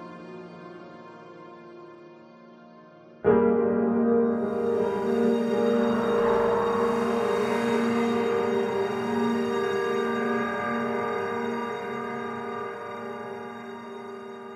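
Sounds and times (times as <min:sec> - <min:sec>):
mysterious ambience: 0:04.3 - 0:14.5.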